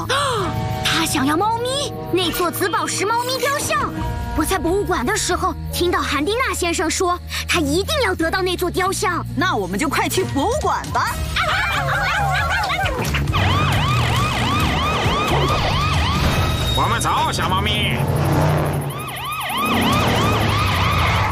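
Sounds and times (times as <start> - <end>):
laser alarm ringing: 0.7 - 5.7, 13.3 - 21.3
speech: 1.1 - 13.2, 16.8 - 18.8
laughter: 11.2 - 13.5.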